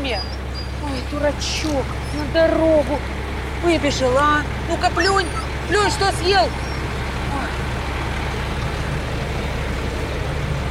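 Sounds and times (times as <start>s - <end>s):
red lorry engine rumbling while reversing slowly: 0.0s - 10.7s
speech: 1.1s - 6.7s.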